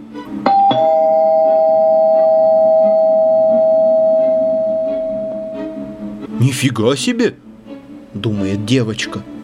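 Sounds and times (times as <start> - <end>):
doorbell ringing: 0.5 - 6.2
speech: 6.4 - 7.4, 8.2 - 9.3.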